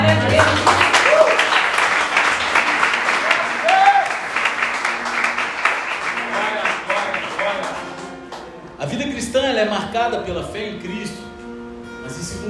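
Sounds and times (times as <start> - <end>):
audience applause: 0.0 - 8.8
speech: 10.0 - 11.1.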